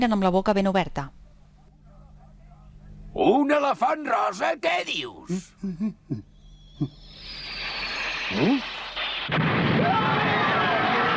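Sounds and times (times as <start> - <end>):
speech: 0.0 - 1.2, 3.2 - 7.0, 8.3 - 8.7
projectiles exploding against a hall: 7.3 - 11.1.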